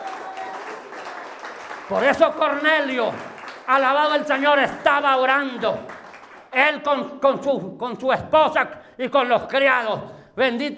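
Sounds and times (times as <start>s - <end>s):
audience applause: 0.0s - 6.5s
speech: 1.9s - 5.9s, 6.5s - 10.7s.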